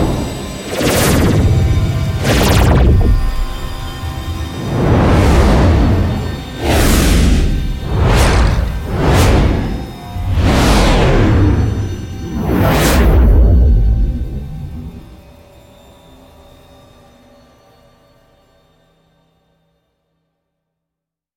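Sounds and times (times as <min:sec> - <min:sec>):
distinct whooshes: 0:00.0 - 0:15.2.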